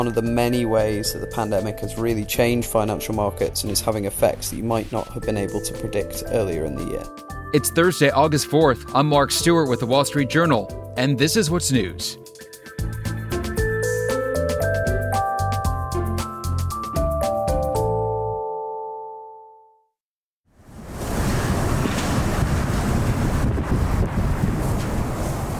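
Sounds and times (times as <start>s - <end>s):
speech: 0.0s - 13.0s
melodic music: 0.0s - 19.9s
strong wind: 20.7s - 25.5s
heavy rain: 20.8s - 25.5s.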